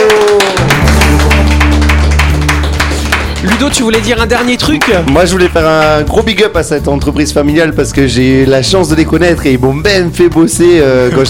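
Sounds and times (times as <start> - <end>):
people clapping: 0.0 - 6.5
speech: 3.6 - 11.2.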